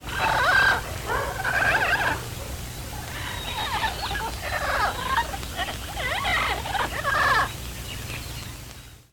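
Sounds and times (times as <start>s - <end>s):
cry in the jungle: 0.0s - 2.4s, 3.0s - 7.6s.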